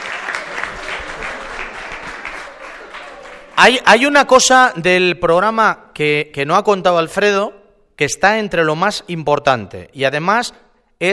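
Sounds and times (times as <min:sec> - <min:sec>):
audience applauding: 0:00.0 - 0:04.1
speech: 0:03.6 - 0:11.1.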